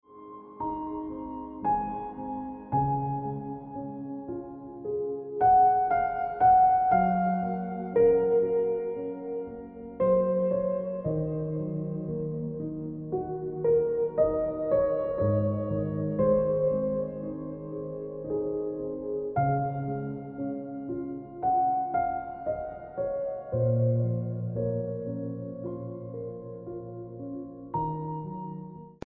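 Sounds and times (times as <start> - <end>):
piano ringtone music: 0.0 - 29.0.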